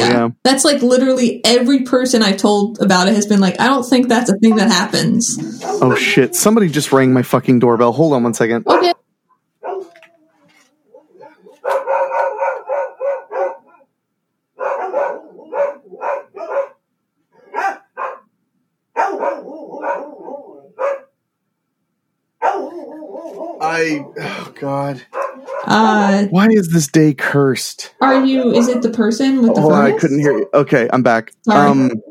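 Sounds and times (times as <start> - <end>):
speech: 0.3 - 9.0, 23.6 - 32.0
dogs barking: 4.3 - 6.7, 8.6 - 9.0, 9.6 - 10.3, 10.9 - 13.9, 14.6 - 18.3, 18.9 - 21.2, 22.4 - 24.4, 25.0 - 25.8, 28.0 - 30.6.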